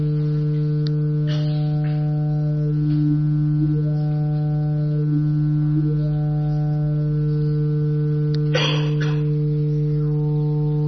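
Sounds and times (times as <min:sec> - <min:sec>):
synthesized buzzer through two vocal resonances: 0:00.0 - 0:10.8.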